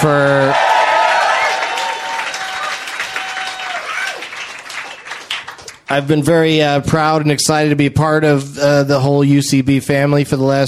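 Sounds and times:
speech: 0:00.0 - 0:00.6, 0:05.9 - 0:10.6
cheers and whoops: 0:00.0 - 0:05.1
audience applause: 0:00.0 - 0:05.9.

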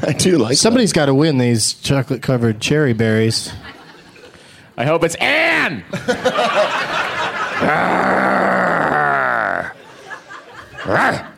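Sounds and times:
speech: 0:00.0 - 0:03.8, 0:04.8 - 0:08.5
laughter: 0:03.5 - 0:04.5, 0:05.9 - 0:11.3
woman growling: 0:07.6 - 0:09.8.

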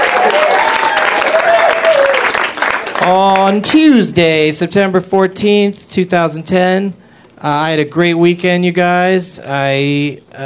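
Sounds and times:
live audience cheering and applauding at the UCB Theater in Los Angeles: 0:00.0 - 0:03.6
speech: 0:03.1 - 0:10.4.

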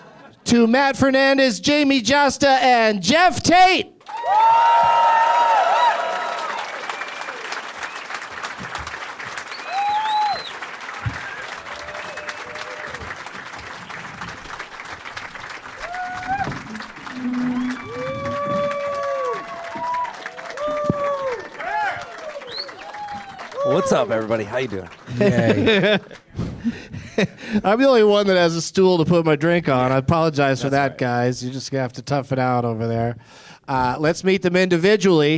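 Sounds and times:
laughter: 0:00.0 - 0:00.4, 0:23.6 - 0:27.6
speech: 0:00.5 - 0:05.4, 0:23.8 - 0:35.3
cheering: 0:04.0 - 0:25.8
studio audience applause: 0:04.0 - 0:26.3
crowd murmur: 0:16.4 - 0:18.8.

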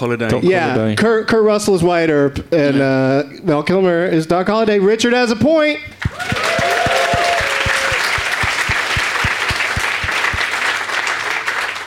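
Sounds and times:
speech: 0:00.0 - 0:06.5
steady rhythmic thumping: 0:05.9 - 0:10.8
audience applause: 0:06.0 - 0:11.8
whoop: 0:06.1 - 0:08.2.

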